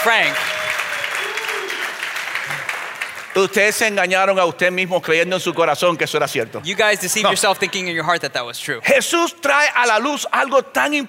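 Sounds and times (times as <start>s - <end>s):
speech: 0.0s - 0.6s, 3.4s - 11.0s
audience applause: 0.0s - 4.0s.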